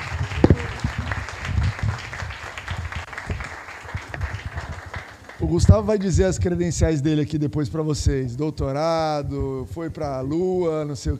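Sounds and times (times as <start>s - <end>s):
audience applause: 0.0s - 6.1s
speech: 5.4s - 11.1s.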